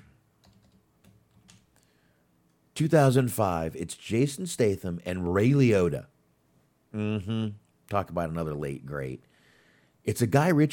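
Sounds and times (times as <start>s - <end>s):
typing on a computer keyboard into an IMDb search: 0.0s - 1.7s
speech: 2.8s - 6.1s, 6.9s - 9.3s, 10.0s - 10.7s.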